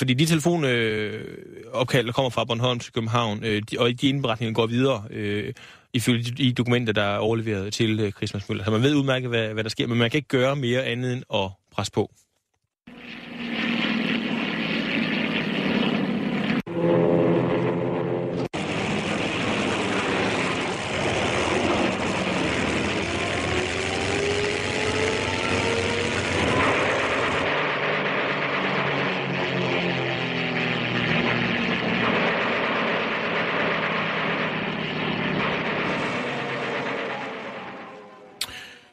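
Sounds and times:
speech: 0.0s - 12.2s
Soviet fighter-bomber aircraft flying overhead: 12.9s - 38.9s.

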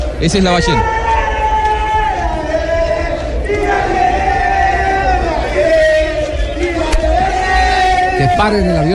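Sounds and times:
speech: 0.2s - 1.0s, 8.2s - 8.9s
football fans chanting: 1.7s - 8.2s.

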